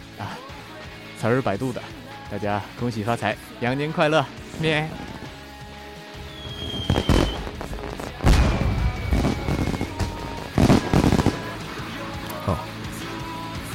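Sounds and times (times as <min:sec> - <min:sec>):
speech: 0:00.2 - 0:00.4, 0:01.2 - 0:05.1
firecrackers exploding: 0:06.2 - 0:11.7.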